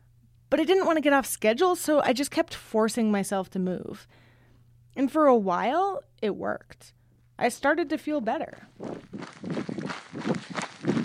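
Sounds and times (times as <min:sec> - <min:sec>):
speech: 0:00.5 - 0:04.2, 0:05.0 - 0:10.6
water bottles sloshing in a backpack while running: 0:08.8 - 0:11.0.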